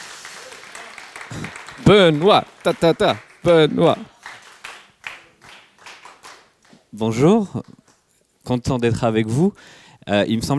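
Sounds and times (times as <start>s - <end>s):
audience applause: 0.0s - 6.8s
speech: 1.3s - 4.1s, 7.0s - 7.8s, 8.5s - 10.5s.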